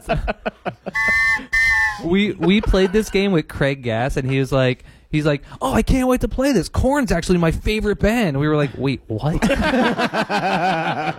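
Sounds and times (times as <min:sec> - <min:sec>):
laughter: 0:00.0 - 0:03.4, 0:09.4 - 0:11.1
speech: 0:00.1 - 0:00.7, 0:02.0 - 0:11.1
whistle being blown: 0:00.9 - 0:02.1.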